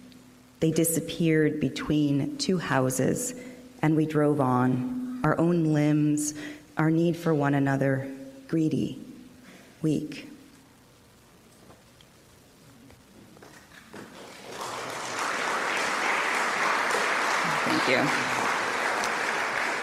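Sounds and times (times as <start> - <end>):
speech: 0.6 - 9.0, 9.8 - 10.3, 17.9 - 18.4
audience clapping after poem reading: 13.4 - 19.8.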